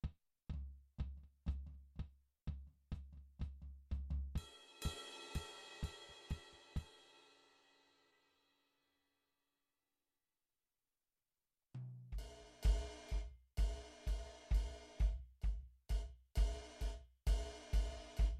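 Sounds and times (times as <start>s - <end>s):
drum: 0.0s - 7.3s, 11.8s - 18.3s.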